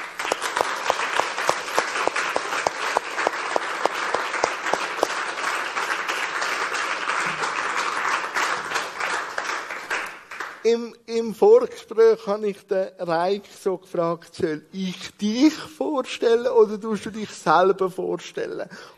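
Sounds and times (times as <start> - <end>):
warm audience applause welcoming a guest: 0.0 - 10.6
speech: 10.7 - 18.9.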